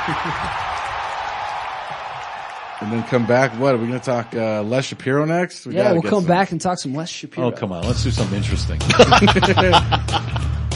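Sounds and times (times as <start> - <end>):
laughter: 0.0 - 0.8, 8.9 - 10.6
crowd noise sound effect: 0.0 - 6.2
speech: 0.1 - 0.7, 2.8 - 10.4.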